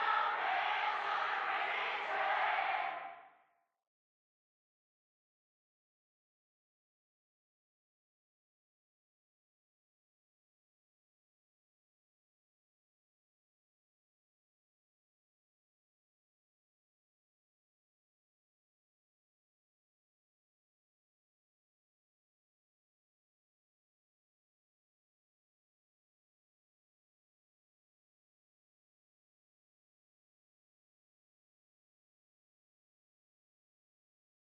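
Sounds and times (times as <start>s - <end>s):
crowd: 0.0s - 3.5s.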